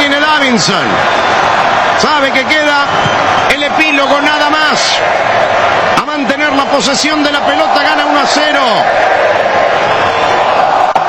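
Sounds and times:
stadium crowd cheering at a football match in Vancouver: 0:00.0 - 0:11.0
speech: 0:00.5 - 0:01.3, 0:02.0 - 0:10.4.

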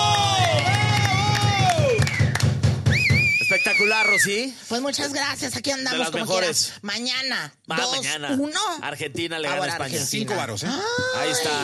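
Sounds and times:
applause and cheering for the staff: 0:00.0 - 0:04.3
speech: 0:04.2 - 0:11.6.

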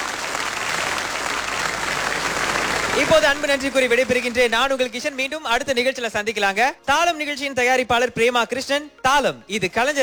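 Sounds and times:
audience applause at the close of a Tamil music programme: 0:00.0 - 0:05.3
speech: 0:03.0 - 0:10.0.

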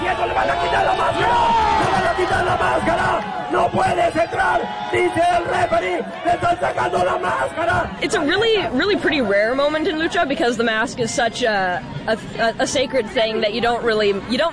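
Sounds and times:
wrestling crowd shouting, cheering and whooping: 0:00.0 - 0:14.5
speech: 0:00.3 - 0:01.6, 0:02.2 - 0:14.5.

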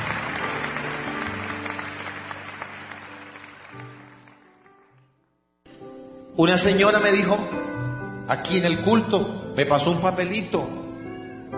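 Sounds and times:
audience applause: 0:00.0 - 0:04.6
speech: 0:06.4 - 0:10.8.

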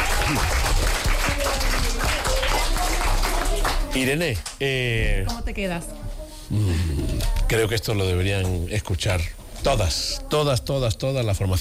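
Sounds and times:
audience applause: 0:00.0 - 0:04.4
speech: 0:00.3 - 0:00.6, 0:03.9 - 0:06.9, 0:07.5 - 0:11.5.

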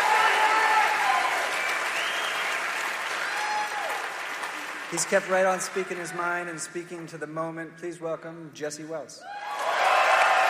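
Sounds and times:
audience applause: 0:00.0 - 0:06.4, 0:09.4 - 0:10.4
speech: 0:04.9 - 0:09.5.

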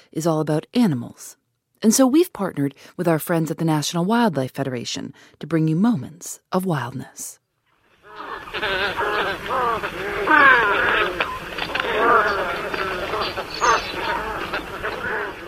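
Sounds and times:
speech: 0:00.1 - 0:07.4, 0:08.2 - 0:11.3
white ibis calls: 0:07.9 - 0:15.4.

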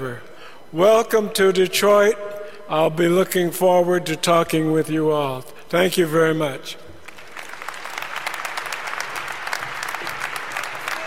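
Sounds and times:
speech: 0:00.0 - 0:06.8
audience applause: 0:07.1 - 0:11.0.

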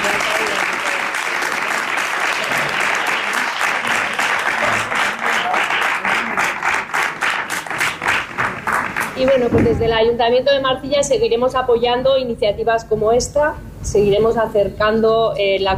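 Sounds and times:
audience applause: 0:00.0 - 0:09.6
speech: 0:09.5 - 0:15.7.

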